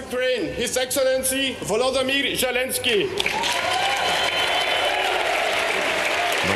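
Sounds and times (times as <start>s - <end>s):
speech: 0.1s - 3.9s
sustained applause, standing ovation: 3.1s - 6.5s.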